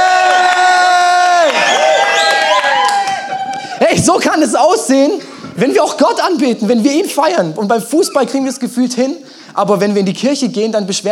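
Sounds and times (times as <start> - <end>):
audience cheering loudly: 0.0 - 4.1
speech: 4.1 - 11.0.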